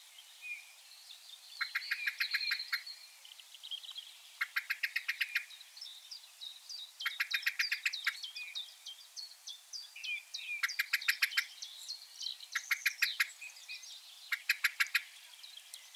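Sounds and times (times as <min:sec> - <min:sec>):
other birds' song: 0:00.0 - 0:15.9
common blackbird chinking: 0:01.6 - 0:15.9.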